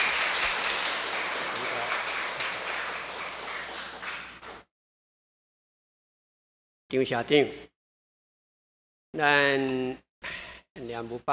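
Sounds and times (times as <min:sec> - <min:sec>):
audience applause: 0:00.0 - 0:04.7
speech: 0:06.9 - 0:07.7, 0:09.2 - 0:11.3.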